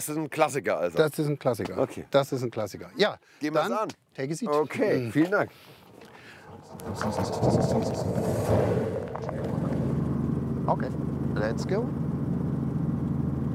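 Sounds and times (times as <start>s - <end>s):
speech: 0.0s - 9.6s, 10.7s - 12.0s
Robinson helicopter engine starting up: 5.6s - 13.5s.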